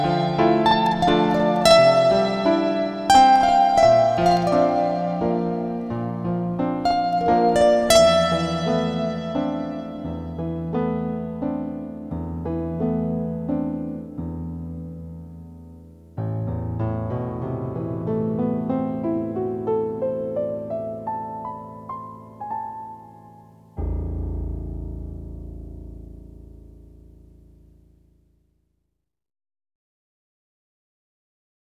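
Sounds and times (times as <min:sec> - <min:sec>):
slow instrumental waltz: 0:00.0 - 0:24.0.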